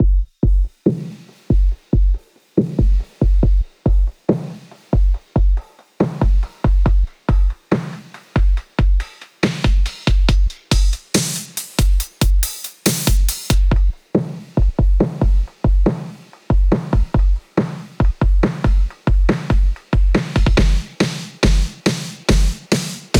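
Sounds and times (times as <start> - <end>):
140 BPM intro break drums: 0.0 - 23.1.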